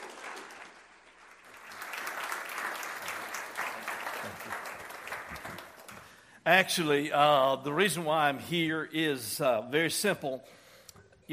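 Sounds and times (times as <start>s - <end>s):
church congregation clapping to welcome a guest speaker: 0.0s - 6.4s
speech: 6.4s - 10.6s.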